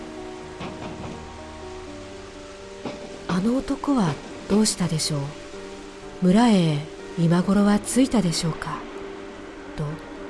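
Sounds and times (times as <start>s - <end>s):
steady rain beating on a door: 0.0s - 10.2s
wind gusts beating on a door: 0.0s - 10.2s
speech: 3.4s - 5.4s, 6.2s - 8.9s.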